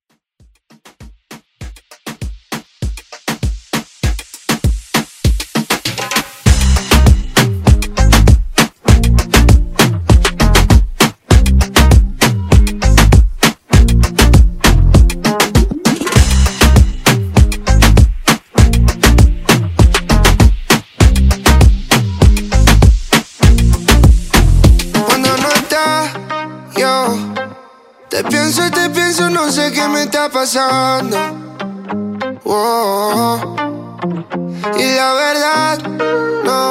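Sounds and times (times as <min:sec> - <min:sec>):
moombahton music: 0:00.1 - 0:36.6.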